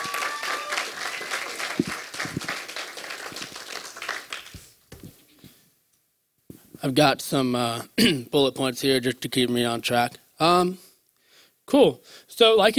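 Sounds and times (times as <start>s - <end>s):
round of applause: 0.0s - 4.8s
speech: 6.8s - 10.8s, 11.7s - 12.7s.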